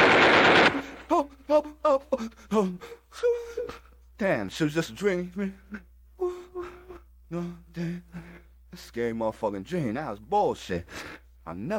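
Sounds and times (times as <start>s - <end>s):
machine gun fire: 0.0s - 1.3s
speech: 1.2s - 11.7s.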